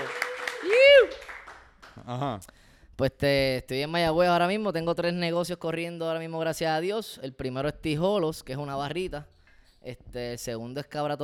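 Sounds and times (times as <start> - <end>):
applause: 0.0 - 2.2
speech: 2.1 - 11.2.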